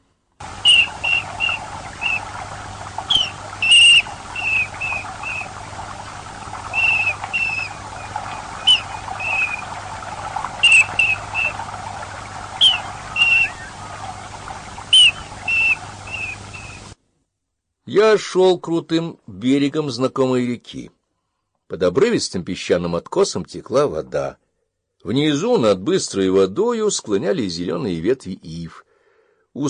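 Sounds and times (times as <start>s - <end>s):
kingfisher calls: 0.4s - 17.0s
speech: 18.0s - 21.0s, 21.7s - 24.4s, 25.0s - 28.9s.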